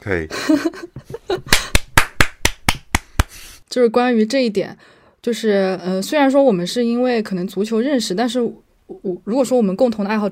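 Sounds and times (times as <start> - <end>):
speech: 0.0 - 1.6, 3.8 - 10.3
clapping: 1.5 - 3.4.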